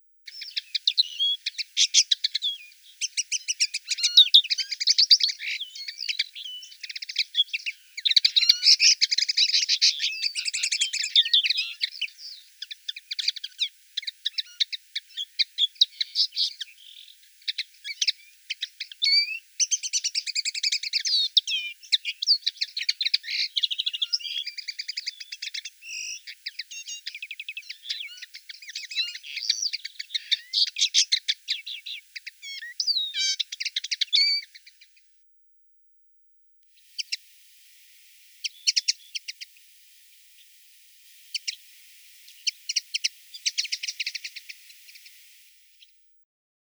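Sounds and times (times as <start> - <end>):
common linnet calling: 0.3 - 35.1, 36.8 - 46.1.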